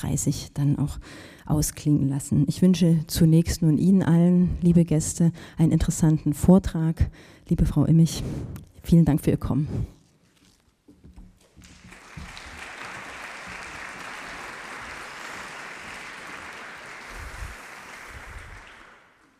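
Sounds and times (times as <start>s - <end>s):
speech: 0.0s - 10.0s
audience applause: 11.6s - 19.3s.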